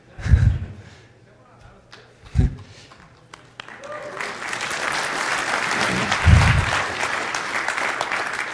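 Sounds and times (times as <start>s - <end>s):
sparse sympathy applause from audience: 3.3s - 8.5s.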